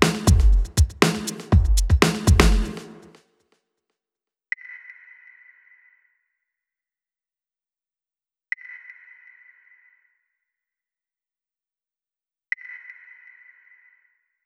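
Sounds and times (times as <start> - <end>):
drums at 120 BPM: 0.0 - 3.2.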